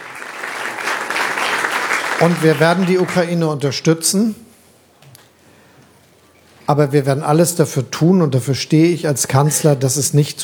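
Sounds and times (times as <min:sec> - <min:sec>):
audience applause: 0:00.0 - 0:03.4
speech: 0:02.2 - 0:04.5, 0:06.7 - 0:10.4.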